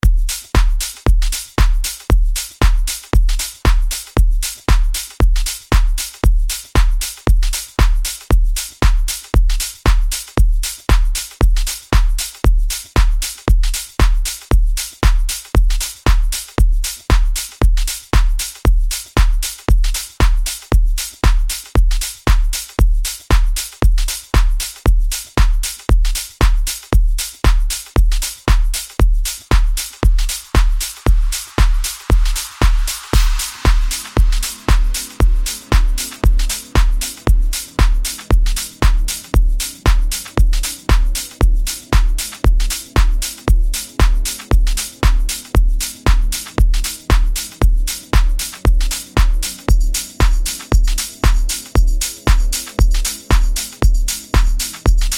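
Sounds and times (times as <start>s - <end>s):
groove mix: 0.0s - 55.1s.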